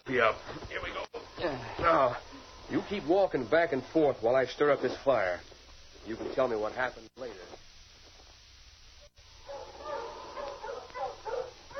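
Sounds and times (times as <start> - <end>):
speech: 0.1 - 7.3
pack of sled dogs yelping: 9.4 - 11.7.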